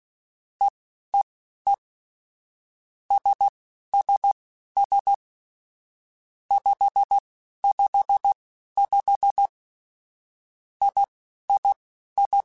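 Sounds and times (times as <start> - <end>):
morse code beeps: 3.1 - 5.2, 6.5 - 9.5, 10.8 - 12.4.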